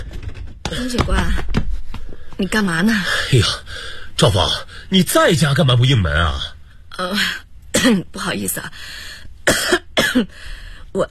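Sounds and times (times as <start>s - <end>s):
speech: 0.8s - 1.6s, 2.4s - 11.1s
woman coughing badly: 7.8s - 8.1s, 9.4s - 10.4s.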